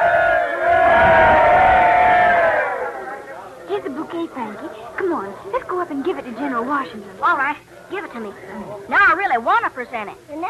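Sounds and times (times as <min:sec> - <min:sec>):
crowd giving three cheers: 0:00.0 - 0:03.3
speech: 0:05.4 - 0:10.4.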